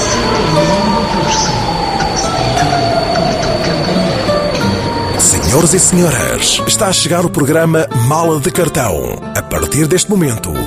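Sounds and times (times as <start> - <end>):
train wheels squealing: 0.0 - 6.7
Intercidades train rumbling in a radio jingle: 0.0 - 7.6
speech: 5.6 - 10.6.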